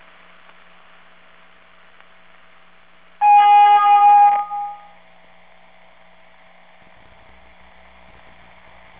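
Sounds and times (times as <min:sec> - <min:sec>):
music: 0:03.2 - 0:04.9.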